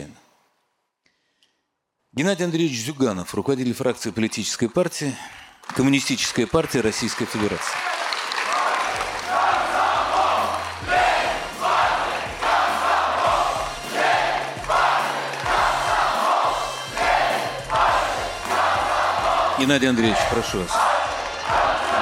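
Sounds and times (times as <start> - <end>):
speech: 2.2 - 8.0, 19.6 - 20.9
crowd chanting slogans: 8.4 - 22.0.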